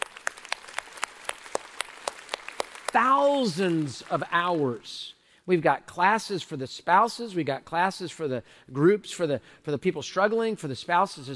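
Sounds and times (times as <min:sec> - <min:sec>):
audience applause: 0:00.0 - 0:04.7
speech: 0:03.0 - 0:11.3.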